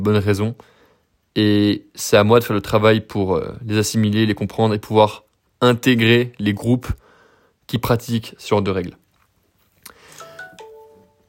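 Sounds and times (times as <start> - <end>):
speech: 0.0 - 0.8, 1.4 - 7.0, 7.7 - 9.0
device notification sound: 10.1 - 11.2.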